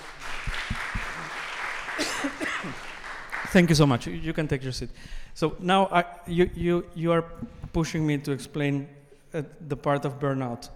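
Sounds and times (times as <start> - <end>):
crowd applause: 0.0 - 3.8
speech: 3.5 - 10.7.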